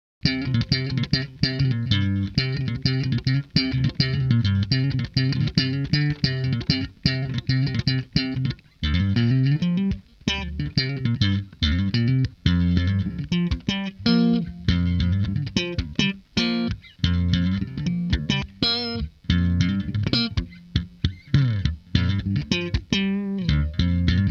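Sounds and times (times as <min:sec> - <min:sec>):
guitar: 0:00.2 - 0:24.2.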